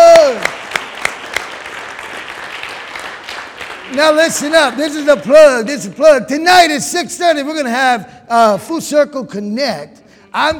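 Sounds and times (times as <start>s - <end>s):
audience applause: 0.0s - 5.4s
speech: 4.0s - 10.5s.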